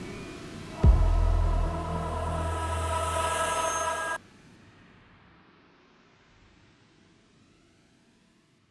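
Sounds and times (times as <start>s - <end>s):
musical stinger: 0.8s - 4.2s.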